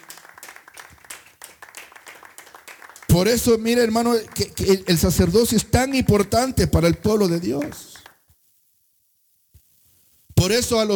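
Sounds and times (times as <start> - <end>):
audience clapping: 0.0 - 8.2
speech: 3.1 - 7.9, 10.5 - 10.9.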